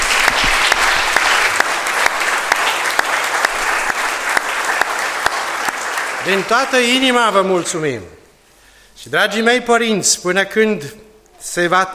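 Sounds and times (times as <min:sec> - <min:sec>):
audience applause: 0:00.0 - 0:07.4
speech: 0:06.3 - 0:08.2, 0:09.0 - 0:11.9.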